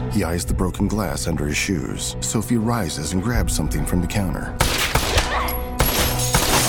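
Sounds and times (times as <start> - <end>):
speech: 0.2 - 4.8
gunshots: 4.6 - 6.6.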